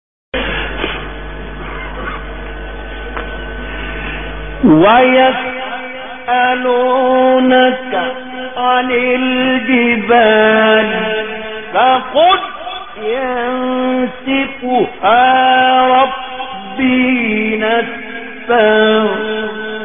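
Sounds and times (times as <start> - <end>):
beautiful recitation of verses of a sura: 4.6 - 19.8.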